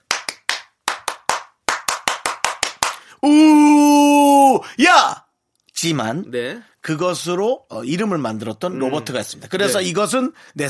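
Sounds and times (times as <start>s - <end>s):
3-3-7 rhythmic cheering hand claps: 0.0s - 3.1s
speech: 3.2s - 3.9s, 4.6s - 5.2s, 5.8s - 10.6s.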